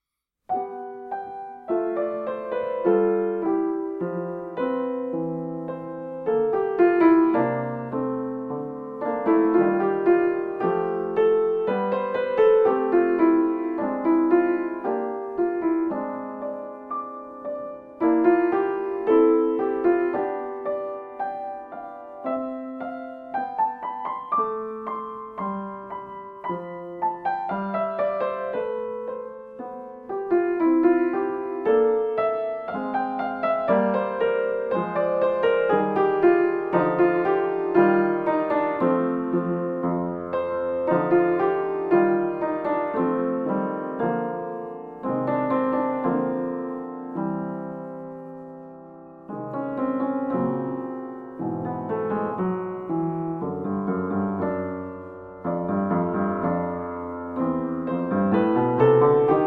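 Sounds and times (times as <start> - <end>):
gentle piano: 0.0 - 59.4.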